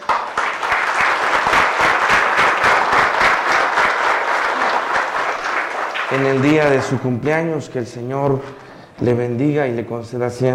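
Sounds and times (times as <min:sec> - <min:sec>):
loud applause: 0:00.0 - 0:07.1
speech: 0:06.1 - 0:10.5.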